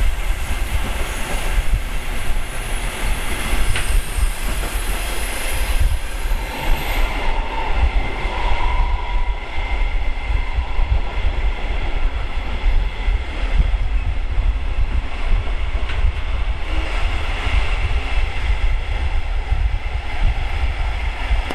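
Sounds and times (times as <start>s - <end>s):
train in Germany: 0.0s - 21.5s.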